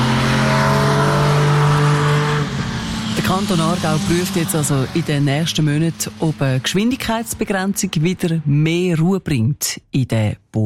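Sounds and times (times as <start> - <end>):
loud motorcycle engine roaring past: 0.0 - 8.2
speech: 3.4 - 10.6.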